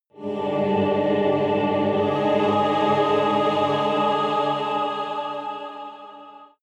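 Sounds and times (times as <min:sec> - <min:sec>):
evil choir chord rising: 0:00.1 - 0:06.6.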